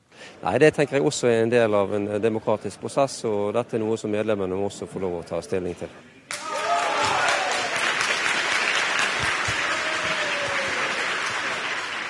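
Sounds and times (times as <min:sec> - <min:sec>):
speech: 0:00.4 - 0:06.2
whoops and cheering voices: 0:06.3 - 0:08.0, 0:09.4 - 0:11.7
crowd applauding at a meeting: 0:06.3 - 0:12.0.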